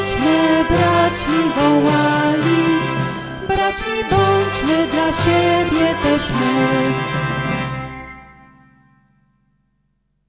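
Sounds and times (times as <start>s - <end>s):
hymn with vocals: 0.0s - 7.4s.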